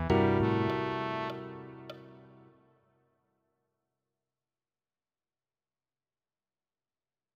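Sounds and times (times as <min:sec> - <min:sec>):
melodic line over chord variations: 0:00.1 - 0:02.5.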